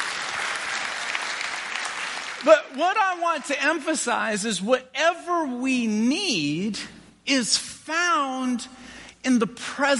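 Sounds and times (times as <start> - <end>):
audience round of applause: 0.0 - 2.9
speech: 2.4 - 9.9.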